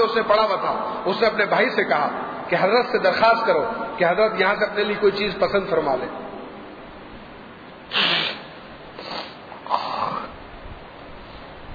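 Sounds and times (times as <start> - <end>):
speech: 0.0 - 6.2
person with a cold sniffing and clearing a congested nose: 7.9 - 10.3.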